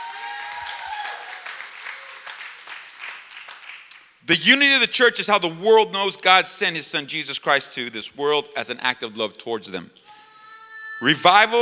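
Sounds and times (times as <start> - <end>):
audience clapping: 0.0 - 4.2
speech: 4.3 - 10.2, 11.0 - 11.5.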